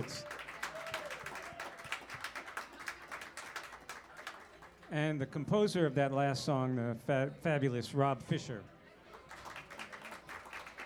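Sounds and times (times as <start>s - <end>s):
speech: 0.0s - 0.3s, 4.9s - 8.8s
audience applause for the drummer: 0.0s - 4.8s, 9.2s - 10.8s.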